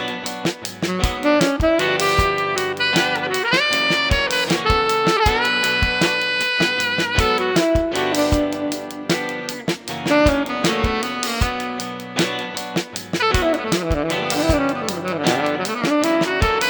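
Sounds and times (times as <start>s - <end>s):
chilled saxophone: 0.0s - 16.6s
guitar: 0.0s - 16.6s.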